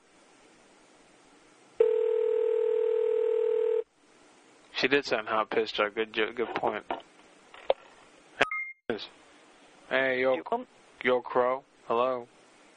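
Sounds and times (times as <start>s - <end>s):
electronic telephone dialing tones: 1.8s - 3.8s
speech: 4.9s - 7.0s, 9.0s - 9.2s, 9.9s - 12.4s.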